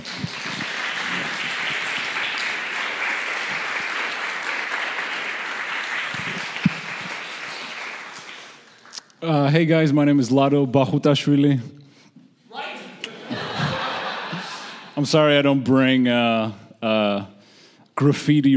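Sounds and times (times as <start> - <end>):
audience applause: 0.0 - 9.0
speech: 9.2 - 11.8, 15.0 - 17.3, 18.0 - 18.5
laughter: 12.8 - 15.1.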